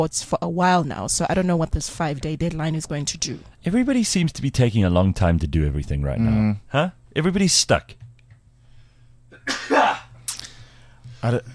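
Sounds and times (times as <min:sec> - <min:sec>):
speech: 0:00.0 - 0:08.0, 0:11.2 - 0:11.5
sneeze: 0:09.4 - 0:10.4.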